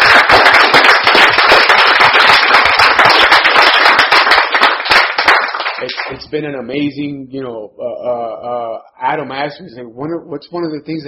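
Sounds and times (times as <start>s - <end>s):
round of applause: 0.0s - 6.2s
speech: 6.3s - 11.0s.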